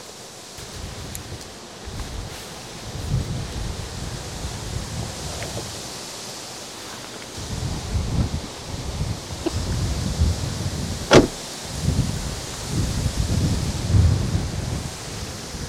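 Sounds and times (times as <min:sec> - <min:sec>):
strong wind outdoors: 0:00.6 - 0:06.0, 0:07.4 - 0:15.6.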